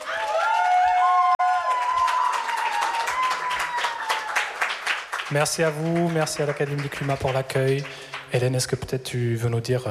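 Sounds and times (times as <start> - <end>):
whoops and cheering voices: 0.0 - 4.6
crowd clapping: 0.0 - 8.9
speech: 5.3 - 9.8.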